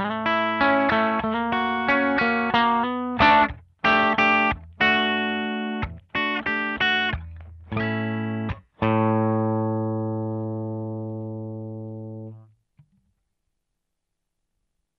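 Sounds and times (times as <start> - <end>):
Gibson Les Paul Special Faded electric guitar: 0.0 - 12.5.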